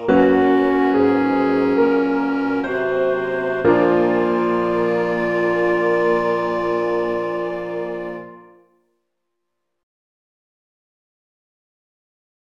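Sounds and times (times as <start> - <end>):
lullaby music: 0.1 - 8.7.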